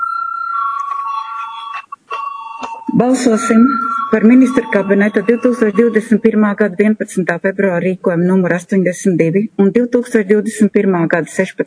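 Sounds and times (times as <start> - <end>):
parliament voting bell ringing: 0.0 - 6.6
speech: 3.0 - 11.6.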